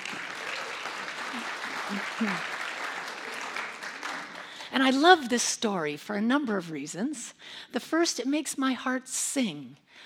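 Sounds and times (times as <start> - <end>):
audience applause: 0.0 - 4.8
speech: 1.9 - 2.6, 4.8 - 10.0.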